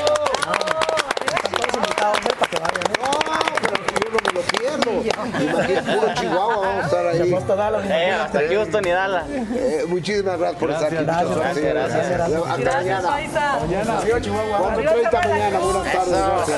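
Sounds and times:
audience applause: 0.0 - 5.6
laughter: 0.4 - 10.1
speech: 5.2 - 16.5.

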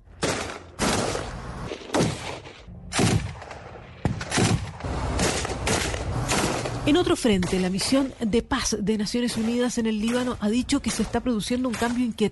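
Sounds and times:
gunfire from combat: 0.2 - 7.9
speech: 6.9 - 12.2.

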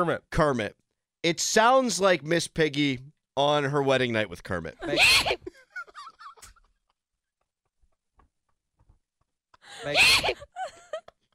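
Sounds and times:
speech: 0.0 - 5.4, 9.8 - 10.8
loud exaggerated sneeze: 4.8 - 5.4, 9.9 - 10.4.

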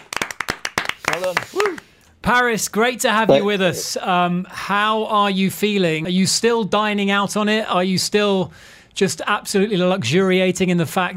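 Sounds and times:
applause: 0.0 - 1.9
speech: 1.2 - 11.1.

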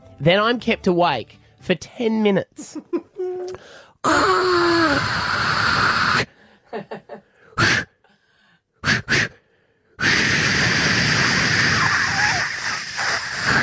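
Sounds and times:
speech: 0.2 - 7.8
voice imitating aerosol insect spray hissing: 4.0 - 6.3, 7.6 - 8.0, 8.8 - 9.4, 10.0 - 13.6.

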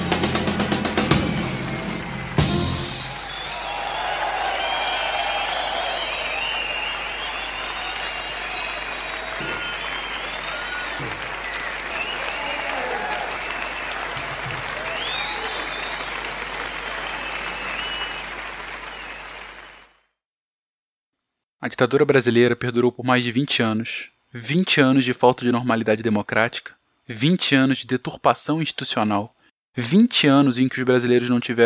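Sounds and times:
thunderous applause: 0.0 - 20.0
speech: 21.7 - 31.6.

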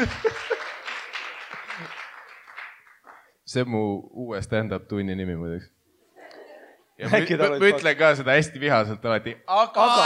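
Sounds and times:
speech: 0.0 - 0.3, 3.5 - 5.8, 7.0 - 10.0
laughter: 0.0 - 2.0, 6.2 - 7.9
audience applause: 0.0 - 3.3.

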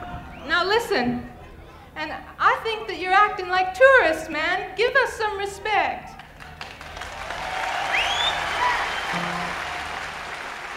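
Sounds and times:
speech: 0.6 - 1.4, 2.0 - 6.2
concert audience applause: 6.2 - 10.7
faint whistles and cheers from concert audience: 7.2 - 10.4.

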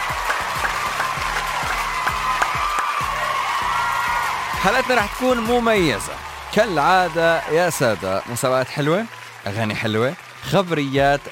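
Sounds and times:
cheers and whoops: 0.0 - 11.3
crowd applause: 0.0 - 11.3
speech: 4.6 - 11.3.

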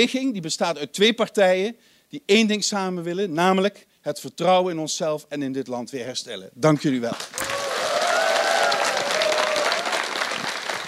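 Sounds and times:
speech: 0.0 - 7.5
loud applause from a large audience: 7.2 - 10.8
faint whistles or cheers: 7.4 - 10.8.

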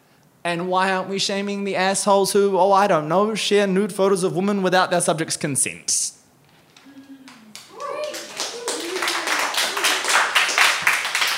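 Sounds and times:
speech: 0.4 - 6.2
audience applause: 7.0 - 11.3.

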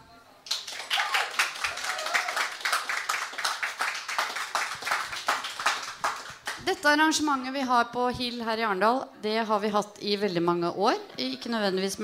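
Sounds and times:
live audience applause: 0.5 - 6.6
speech: 6.6 - 12.0.

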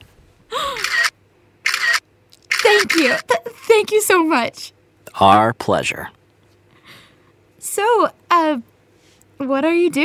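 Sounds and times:
camera shutter clicks taking a selfie: 0.8 - 3.2
speech: 2.8 - 6.2, 7.6 - 8.7, 9.4 - 10.0.

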